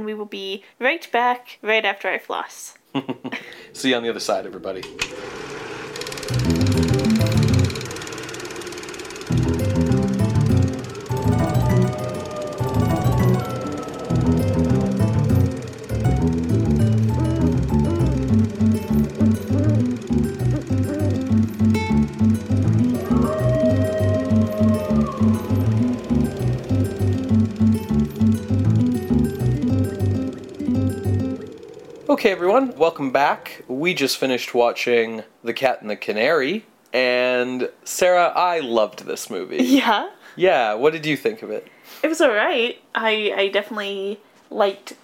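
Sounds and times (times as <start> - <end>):
speech: 0.0 - 5.5, 32.2 - 45.0
laughter: 2.9 - 3.8
instrumental music interlude: 6.2 - 32.8.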